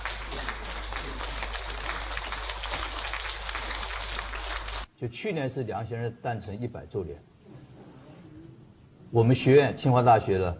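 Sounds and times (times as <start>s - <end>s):
audience applause: 0.0s - 4.9s
speech: 5.0s - 7.3s, 9.1s - 10.5s.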